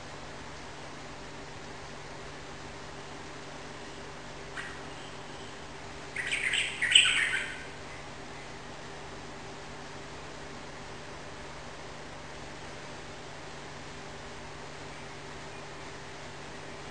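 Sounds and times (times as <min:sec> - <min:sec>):
yellow-vented bulbul singing rapid continuous chattering song indoors in a room: 0:06.1 - 0:08.0.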